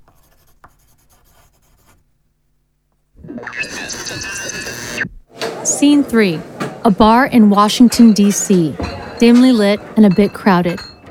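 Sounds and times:
pen scratching on paper as a man writes at his desk: 0.0s - 2.0s
speech: 3.6s - 5.1s, 5.8s - 10.9s.

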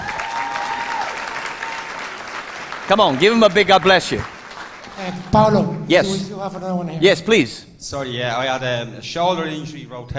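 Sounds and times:
audience applause: 0.0s - 6.0s
speech: 2.9s - 4.4s, 5.0s - 10.1s.

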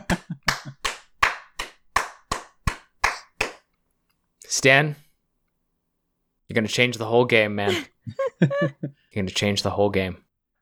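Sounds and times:
laughter: 0.0s - 0.8s, 7.7s - 8.9s
hand clapping: 0.0s - 3.7s
speech: 4.5s - 5.0s, 6.5s - 10.2s.

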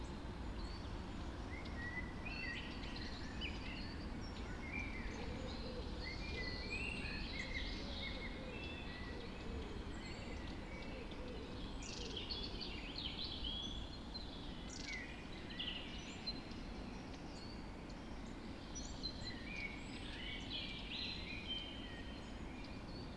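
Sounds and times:
birds singing in a dawn chorus: 0.0s - 23.1s.

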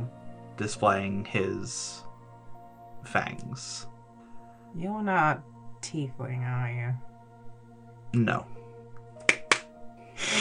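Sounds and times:
speech: 0.6s - 2.1s, 3.0s - 3.9s, 4.7s - 7.1s, 8.1s - 8.6s
hand claps: 9.2s - 9.7s
loud hissing noise: 10.2s - 10.4s.

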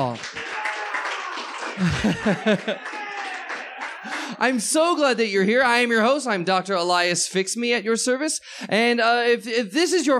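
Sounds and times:
speech: 0.0s - 0.4s, 1.8s - 2.9s, 4.3s - 10.1s
live-show audience applause for the opening act: 0.0s - 4.6s
loud audience laughter and chuckling: 1.8s - 4.3s.

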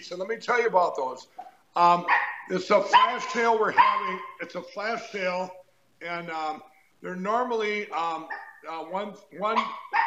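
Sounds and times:
speech: 0.0s - 10.0s
dog barking: 2.0s - 4.4s, 8.2s - 8.7s, 9.6s - 10.0s.

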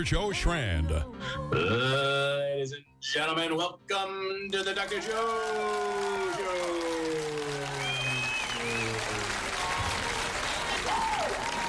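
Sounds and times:
speech: 0.0s - 6.7s
audience applause: 4.6s - 11.6s.

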